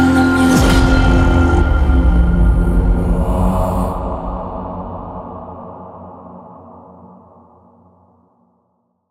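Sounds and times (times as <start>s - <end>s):
background music extended mix: 0.0s - 5.3s.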